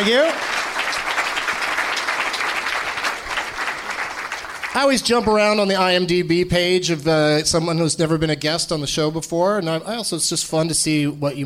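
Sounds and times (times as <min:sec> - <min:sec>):
speech: 0:00.0 - 0:00.5, 0:04.8 - 0:11.4
crowd applause for a guest: 0:00.0 - 0:05.2.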